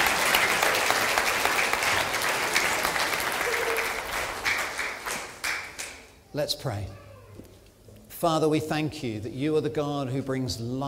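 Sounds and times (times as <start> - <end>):
audience applause: 0.0 - 6.0
speech: 6.4 - 7.0, 8.2 - 10.8.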